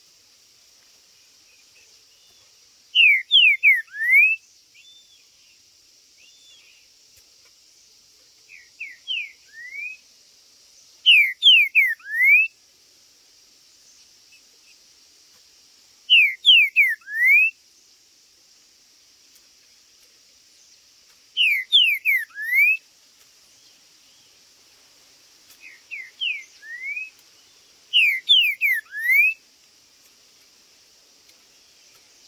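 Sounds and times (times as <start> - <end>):
steady hiss: 0.0 - 32.2
green-winged saltator song: 3.0 - 5.0, 8.5 - 10.0, 11.0 - 12.6, 16.1 - 17.6, 21.4 - 22.8, 25.6 - 27.2, 27.9 - 29.4.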